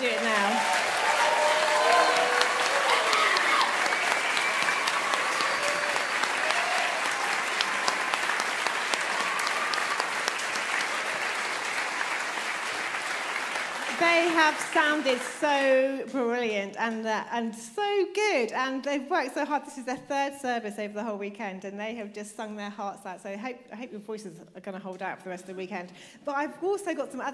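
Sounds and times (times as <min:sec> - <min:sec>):
audience applause: 0:00.0 - 0:15.8
speech: 0:14.4 - 0:27.3.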